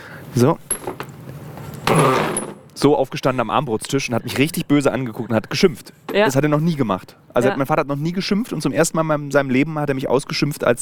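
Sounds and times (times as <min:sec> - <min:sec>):
speech: 0:00.4 - 0:00.7, 0:02.8 - 0:10.8
voice imitating a creaking chair: 0:01.8 - 0:02.6.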